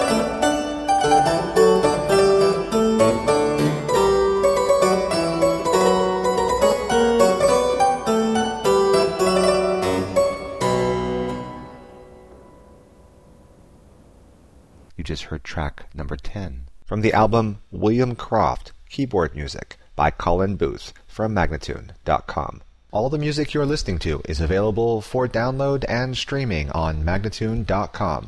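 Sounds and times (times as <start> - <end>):
person speaking: 0.0 - 8.6, 14.9 - 28.2
hornpipe keyboard music in C minor: 0.0 - 13.7.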